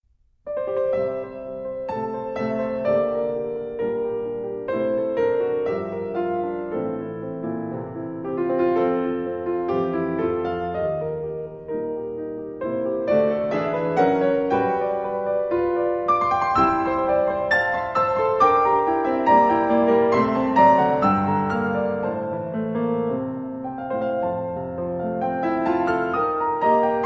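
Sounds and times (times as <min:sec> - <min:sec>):
piano: 0:00.0 - 0:27.0.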